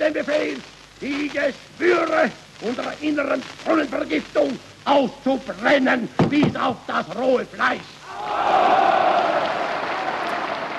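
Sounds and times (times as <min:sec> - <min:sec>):
speech: 0:00.0 - 0:08.7
parliament deputies cheering and applauding in approval: 0:08.0 - 0:10.7.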